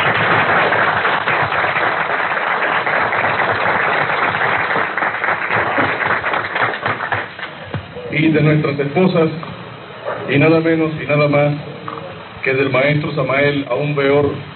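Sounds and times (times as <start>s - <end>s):
assembly applause: 0.0s - 7.6s
speech: 8.4s - 9.5s, 10.3s - 11.7s, 12.4s - 14.5s.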